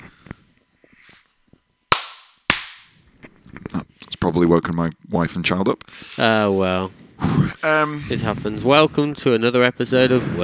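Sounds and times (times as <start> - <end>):
single hand clap for recording sync: 1.9 - 2.9
speech: 4.3 - 10.4.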